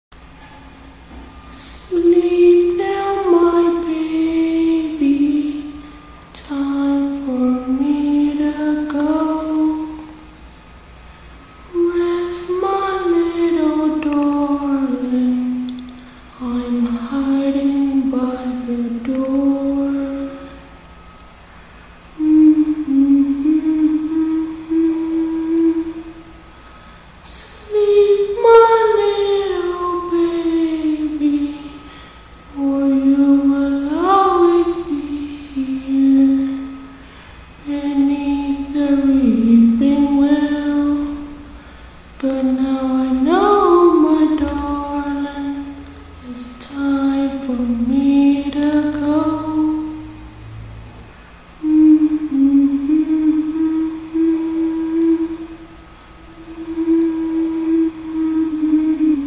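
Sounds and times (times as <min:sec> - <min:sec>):
scary lullaby: 0:00.2 - 0:50.6, 0:51.2 - 0:59.2.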